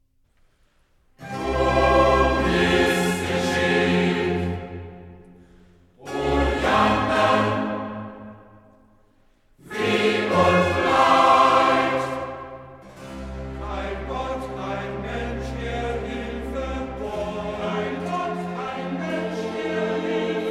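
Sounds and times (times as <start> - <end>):
choir singing: 1.2 - 5.4, 6.0 - 8.9, 9.6 - 20.4.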